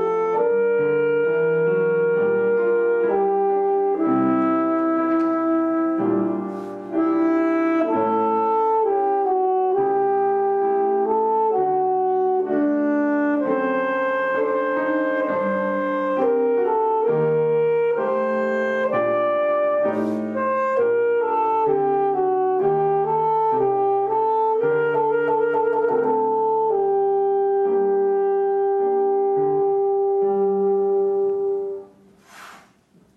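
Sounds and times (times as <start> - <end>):
alto saxophone playing a sonata: 0.0 - 32.2.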